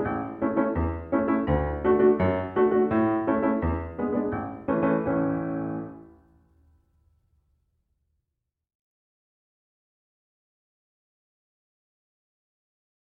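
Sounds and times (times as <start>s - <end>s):
piano: 0.0s - 7.1s.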